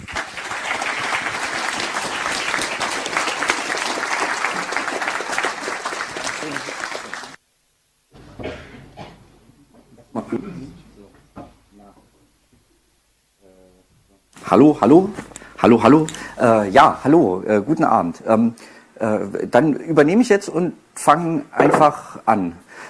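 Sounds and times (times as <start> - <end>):
audience applause: 0.0 - 7.4
speech: 14.5 - 22.6.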